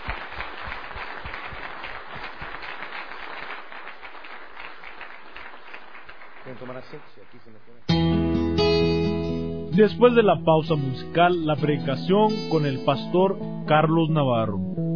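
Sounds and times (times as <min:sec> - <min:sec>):
audience applause: 0:00.0 - 0:07.6
speech: 0:06.6 - 0:14.8.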